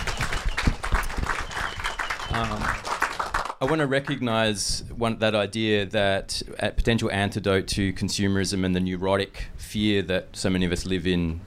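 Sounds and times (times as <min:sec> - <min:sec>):
audience applause: 0:00.0 - 0:04.2
speech: 0:02.3 - 0:02.8, 0:03.6 - 0:11.4.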